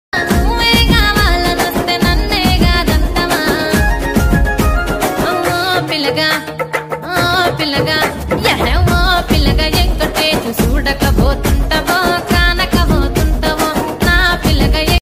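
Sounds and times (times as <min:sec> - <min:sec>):
dance music: 0:00.2 - 0:06.6, 0:07.2 - 0:14.9.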